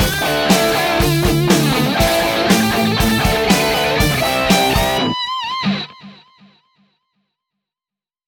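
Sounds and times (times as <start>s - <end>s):
rock guitar attack: 0.0s - 6.4s.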